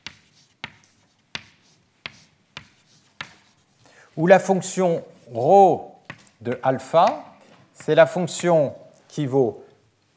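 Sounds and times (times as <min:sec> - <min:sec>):
writing strokes while writing out a formula in a lecture: 0:00.0 - 0:05.4
speech: 0:04.2 - 0:09.6.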